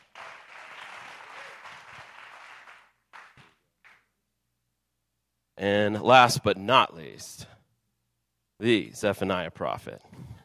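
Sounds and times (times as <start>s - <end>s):
audience applause: 0.0s - 4.0s
speech: 5.6s - 7.6s, 8.6s - 10.3s.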